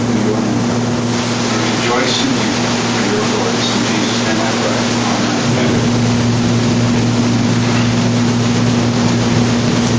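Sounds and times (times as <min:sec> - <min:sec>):
air conditioner running: 0:00.0 - 0:09.9.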